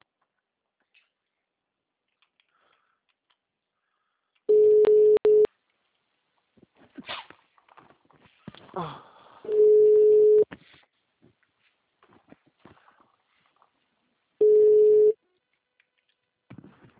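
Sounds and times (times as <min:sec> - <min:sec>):
telephone busy signal tones: 0:04.5 - 0:05.5, 0:09.5 - 0:10.4, 0:14.4 - 0:15.2.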